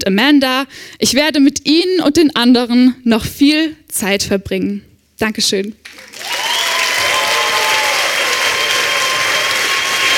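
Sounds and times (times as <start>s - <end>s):
speech: 0.0s - 6.3s
audience applause after a stand-up performance: 5.8s - 10.1s.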